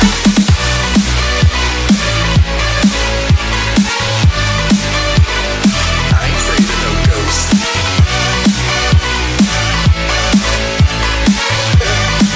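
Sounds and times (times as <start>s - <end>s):
ghost boss battle music: 0.0s - 12.3s.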